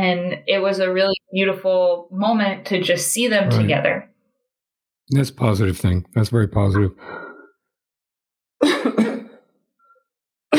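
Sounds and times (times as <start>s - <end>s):
speech: 0.0s - 4.1s, 5.1s - 7.2s
person coughing after tea went down the wrong way: 8.6s - 9.5s.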